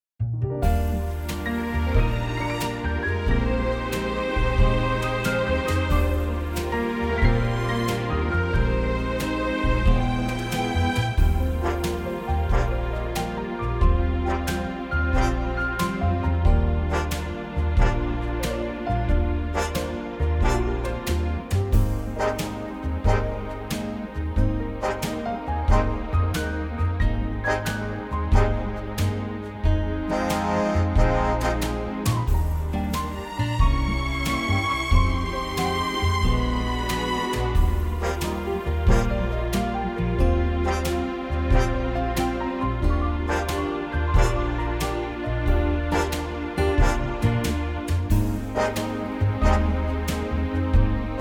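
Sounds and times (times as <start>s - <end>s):
orchestral music in E-flat: 0.2s - 51.1s.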